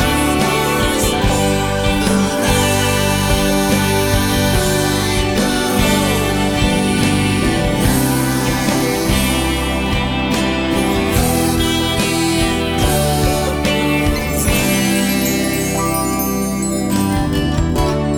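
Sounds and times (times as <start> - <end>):
man singing karaoke: 0.0 - 18.0.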